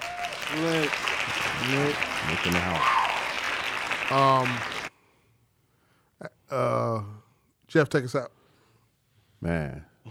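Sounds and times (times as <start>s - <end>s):
hand clapping: 0.0s - 4.9s
speech: 0.5s - 3.0s, 4.1s - 4.8s, 6.2s - 8.4s, 9.4s - 10.0s
person whooping: 2.5s - 3.4s.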